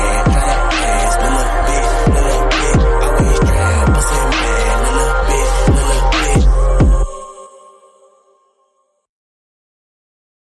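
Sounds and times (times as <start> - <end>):
hip hop rap remix: 0.0 - 8.0.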